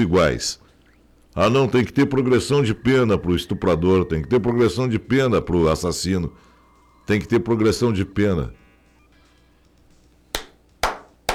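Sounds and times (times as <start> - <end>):
speech: 0.0 - 0.6, 1.4 - 6.5, 7.1 - 8.6
sarcastic slow hand claps: 10.4 - 11.3.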